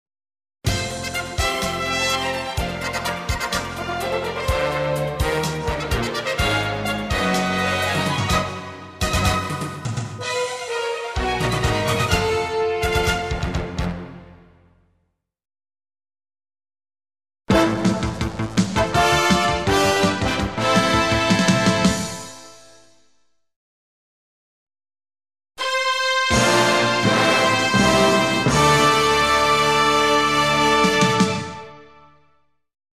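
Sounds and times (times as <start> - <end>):
award ceremony entrance fanfare: 0.7 - 14.4, 17.5 - 22.5, 25.6 - 32.2.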